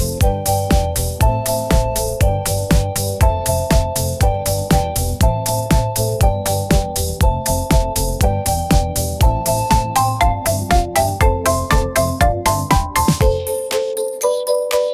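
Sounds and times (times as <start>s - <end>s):
upbeat pop melody: 0.0s - 14.9s.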